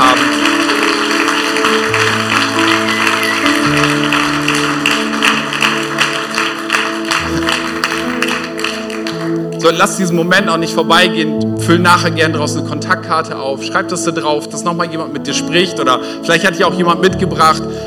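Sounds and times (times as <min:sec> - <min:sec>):
audience applause: 0:00.0 - 0:10.8
speech: 0:09.7 - 0:17.8.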